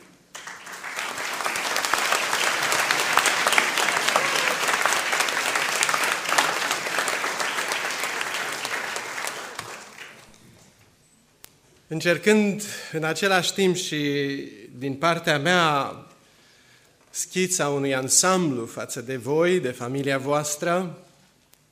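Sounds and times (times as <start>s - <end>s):
audience applauding: 0.3s - 10.5s
speech: 11.9s - 16.1s, 17.2s - 21.1s.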